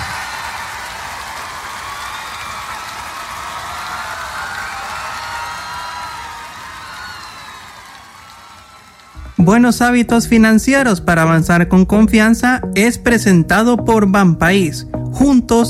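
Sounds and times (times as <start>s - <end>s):
audience applause and cheering: 0.0s - 10.1s
speech: 9.5s - 15.6s.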